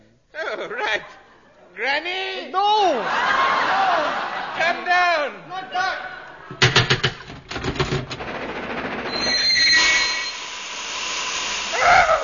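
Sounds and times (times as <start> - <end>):
speech: 0.6 - 1.2, 1.8 - 6.1
laughter: 2.9 - 6.6
faint squealing train brakes: 9.1 - 11.7
brief high steam train whistle: 9.2 - 10.6
long hiss of steam: 9.2 - 12.2.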